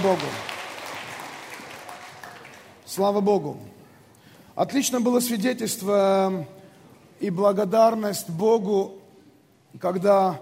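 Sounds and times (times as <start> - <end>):
speech: 0.0 - 0.5, 2.9 - 3.8, 4.6 - 6.6, 7.2 - 9.0, 9.7 - 10.3
audience applause: 0.0 - 2.8.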